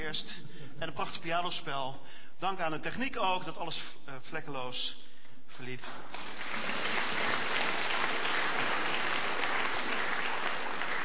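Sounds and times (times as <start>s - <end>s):
speech: 0.1s - 7.4s
applause: 5.7s - 11.0s.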